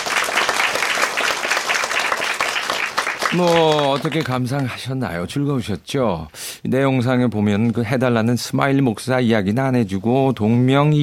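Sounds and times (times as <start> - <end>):
audience applause at the close of a literary reading: 0.0 - 4.7
speech: 3.3 - 11.0.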